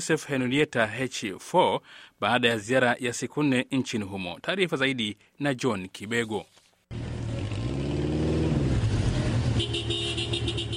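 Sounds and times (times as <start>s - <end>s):
speech: 0.0s - 7.0s
vehicle convoy engines moving through central Aden, Yemen: 6.9s - 10.7s
car horn tooting: 9.1s - 10.7s.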